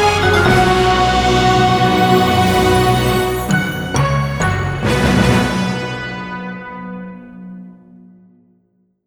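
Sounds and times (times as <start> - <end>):
music jingle: 0.1 - 6.2.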